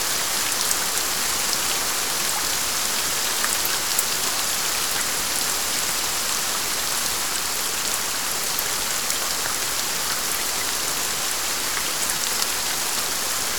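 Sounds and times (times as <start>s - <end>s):
strong steady rain: 0.0s - 13.5s.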